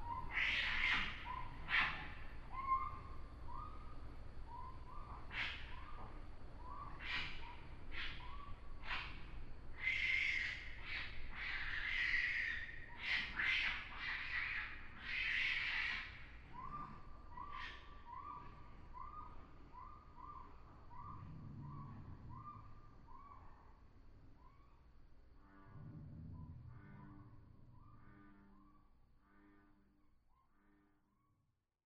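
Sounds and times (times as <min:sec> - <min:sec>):
Northern Raccoon Procyon lotor in North America: 0:00.0 - 0:31.4.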